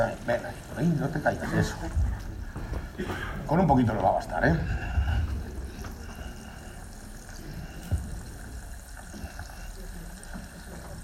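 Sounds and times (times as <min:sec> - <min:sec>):
speech: 0:00.0 - 0:02.3, 0:03.0 - 0:04.9
water poured into a dish while cooking: 0:05.7 - 0:11.0.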